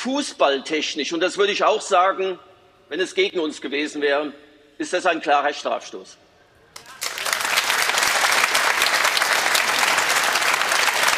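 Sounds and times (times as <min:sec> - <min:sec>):
speech: 0:00.0 - 0:06.2
audience applause: 0:06.8 - 0:11.1.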